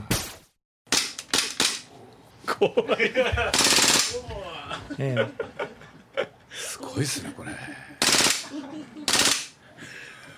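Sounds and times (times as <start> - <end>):
model gun firing rapid shots: 0.9 - 1.9, 3.5 - 4.2, 8.0 - 8.5, 9.1 - 9.6
people talking and laughing: 2.4 - 10.3
speech: 2.6 - 5.7, 6.9 - 8.9.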